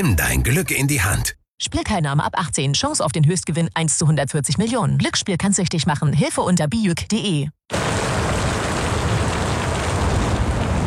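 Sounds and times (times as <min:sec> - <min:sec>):
speech: 0:00.0 - 0:08.0
steady heavy rain: 0:07.7 - 0:10.8.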